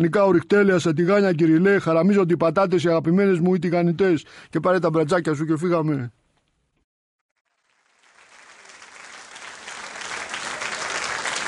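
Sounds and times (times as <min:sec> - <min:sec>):
speech: 0:00.0 - 0:06.2
audience applause: 0:07.5 - 0:11.4.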